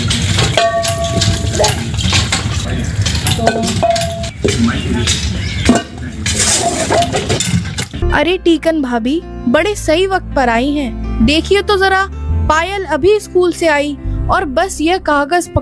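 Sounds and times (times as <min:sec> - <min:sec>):
pots and utensils clinking during cooking: 0:00.0 - 0:08.0
speech: 0:08.2 - 0:15.6.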